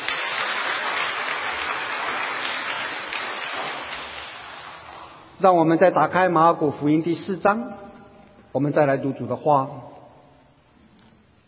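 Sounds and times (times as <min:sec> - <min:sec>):
applause: 0:00.0 - 0:04.8
speech: 0:05.4 - 0:07.8, 0:08.5 - 0:09.9.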